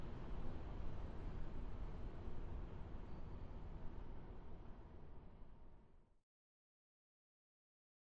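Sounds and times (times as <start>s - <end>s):
subway train: 0.0s - 6.0s.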